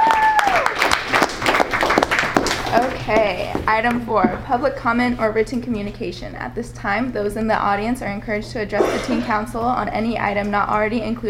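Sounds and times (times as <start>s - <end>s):
audience applause at a teen council meeting: 0.0s - 2.9s
speech: 2.8s - 11.2s.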